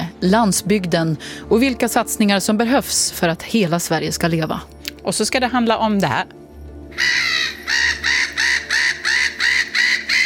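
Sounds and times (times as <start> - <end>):
speech: 0.2 - 7.1
gulls calling: 6.9 - 10.2.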